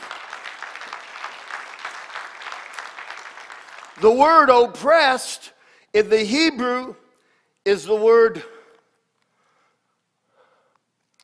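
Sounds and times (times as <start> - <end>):
audience clapping: 0.0 - 4.8
speech: 4.0 - 7.0, 7.6 - 8.6.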